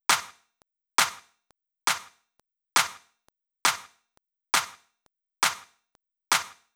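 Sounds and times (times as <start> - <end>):
clap at 135 bpm: 0.0 - 0.4, 1.0 - 1.3, 1.9 - 2.2, 2.8 - 3.1, 3.7 - 6.7.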